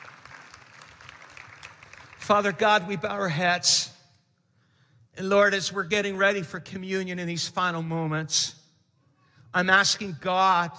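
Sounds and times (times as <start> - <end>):
audience clapping: 0.0 - 2.5
speech: 2.3 - 3.9, 5.2 - 8.6, 9.5 - 10.7.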